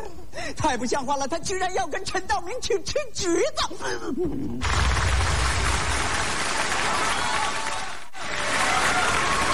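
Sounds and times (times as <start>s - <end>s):
speech: 0.6s - 5.1s
audience applause: 4.6s - 9.5s.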